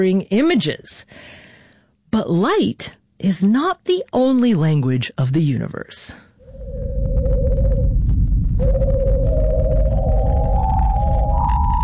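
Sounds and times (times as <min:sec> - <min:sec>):
speech: 0:00.0 - 0:01.4, 0:02.1 - 0:07.0
Venus radio emission converted to sound by NASA's Parker Solar Probe: 0:06.4 - 0:11.8
deep rumble: 0:06.4 - 0:11.8.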